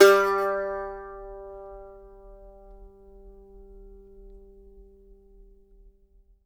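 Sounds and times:
mandolin notes G3: 0.0 - 2.7.

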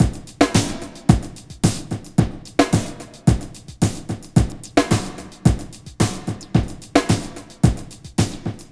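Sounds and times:
basic beats: 0.0 - 8.7.

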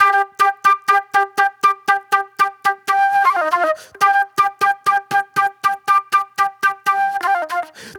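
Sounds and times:
soul flute music: 0.0 - 7.9.

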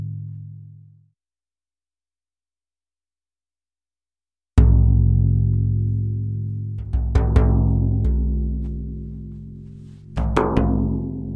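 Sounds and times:
Celtic frame drum: 4.6 - 11.3.

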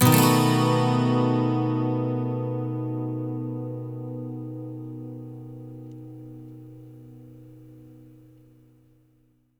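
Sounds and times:
12-string electric guitar loop in B major: 0.0 - 7.8
12-string acoustic guitar loop in B major: 0.0 - 8.8.

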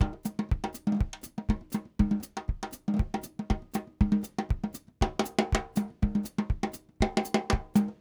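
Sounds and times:
Latin percussion groove: 0.0 - 7.9.

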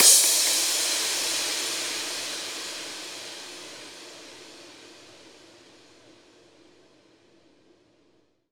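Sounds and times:
crash cymbal: 0.0 - 6.7.

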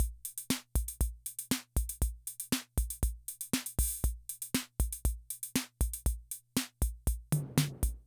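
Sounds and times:
classic drum machine rhythm loop: 0.0 - 8.0.

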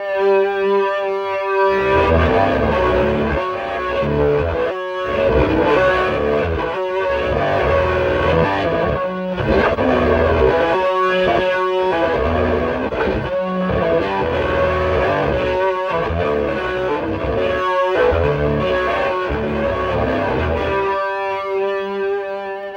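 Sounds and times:
long electric guitar strum: 0.0 - 22.7.

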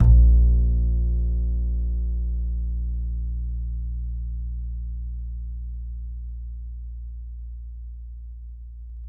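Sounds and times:
soft acoustic bass note A#1: 0.0 - 9.0.

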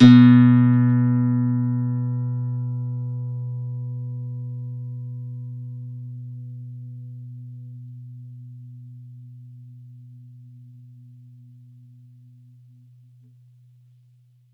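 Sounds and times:
campfire nylon guitar B2 note: 0.0 - 4.2.

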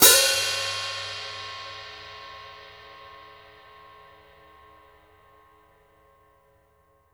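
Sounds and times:
open foot hi-hats: 0.0 - 2.5.

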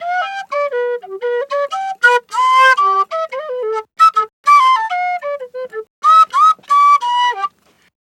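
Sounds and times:
African penny whistle in G: 0.0 - 7.5.

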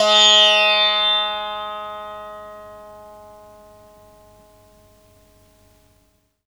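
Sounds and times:
Indian tabla percussion: 0.0 - 5.7.

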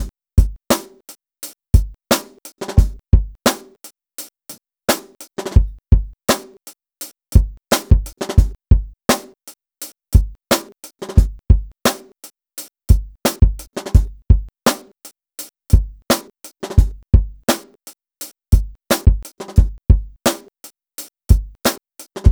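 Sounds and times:
electro lounge drum kit: 0.0 - 3.7, 4.9 - 6.6, 7.3 - 22.3.

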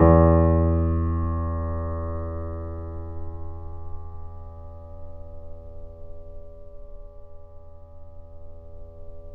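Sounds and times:
grand piano E6 played softly, off mic: 0.0 - 4.6.

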